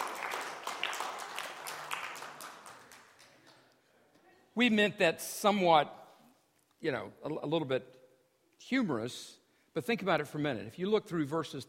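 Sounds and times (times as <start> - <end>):
audience applause: 0.0 - 3.6
speech: 4.6 - 6.0, 6.8 - 8.0, 8.6 - 11.6.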